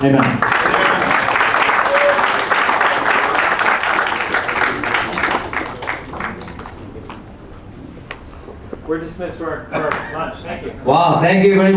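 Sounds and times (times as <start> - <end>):
speech: 0.0 - 0.7, 8.9 - 11.7
audience applause: 0.0 - 7.4.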